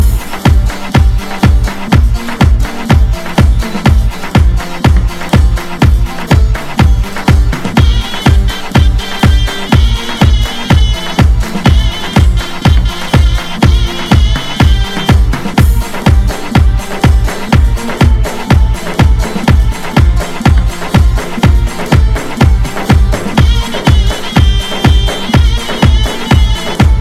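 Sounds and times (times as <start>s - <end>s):
oriental melody: 0.0s - 26.9s.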